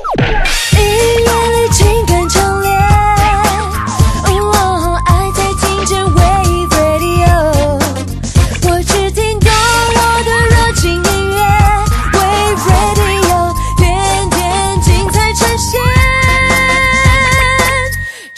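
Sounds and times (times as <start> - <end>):
hip hop music: 0.2 - 18.1.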